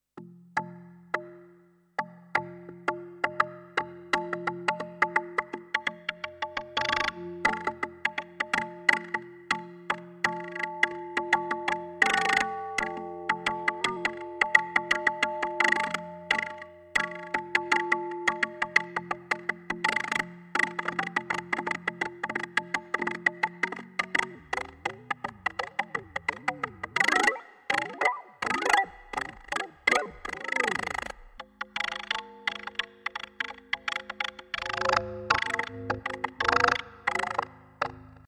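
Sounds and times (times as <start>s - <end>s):
Expressive E Osmose synthesizer: 2.4s - 38.2s.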